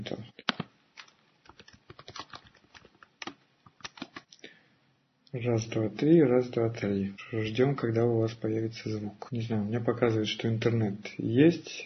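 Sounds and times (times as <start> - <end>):
typing a message on a computer keyboard: 0.5 - 4.3
speech: 5.4 - 11.8.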